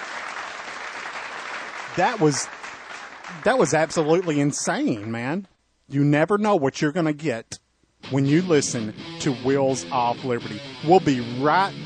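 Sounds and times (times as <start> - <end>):
clapping: 0.0 - 5.2
speech: 2.0 - 2.6, 3.3 - 11.8.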